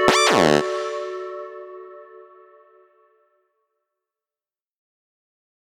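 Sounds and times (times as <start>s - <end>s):
karaoke singing: 0.1s - 0.7s.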